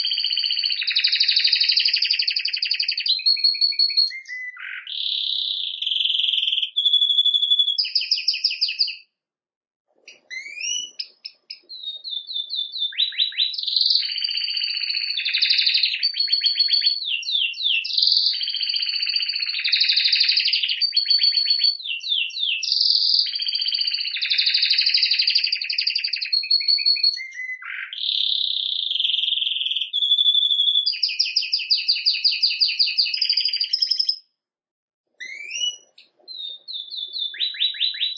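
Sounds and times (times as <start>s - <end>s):
canary singing: 0.0s - 9.0s, 10.1s - 34.2s, 35.2s - 38.1s.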